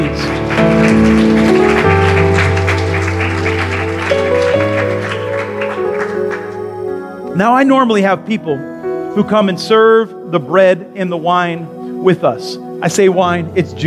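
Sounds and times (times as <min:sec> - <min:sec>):
audience clapping: 0:00.0 - 0:07.3
keyboard or organ chords: 0:00.0 - 0:13.8
speech: 0:07.4 - 0:13.8.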